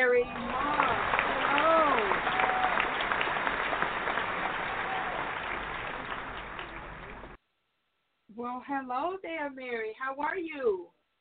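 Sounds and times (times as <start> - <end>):
talk show audience clapping to welcome an author: 0.0 - 7.4
speech: 8.6 - 11.0.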